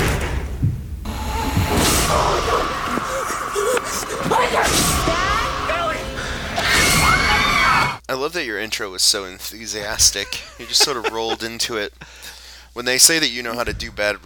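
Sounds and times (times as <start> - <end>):
door closing by itself: 0.0 - 7.5
laughter: 2.1 - 6.6, 9.8 - 12.1
speech: 8.2 - 14.2.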